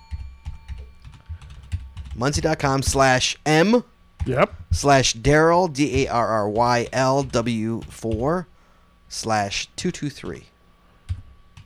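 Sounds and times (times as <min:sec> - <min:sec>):
typing on a computer keyboard: 0:00.1 - 0:02.5, 0:05.8 - 0:08.4, 0:11.1 - 0:11.6
speech: 0:02.2 - 0:08.5, 0:09.1 - 0:10.5.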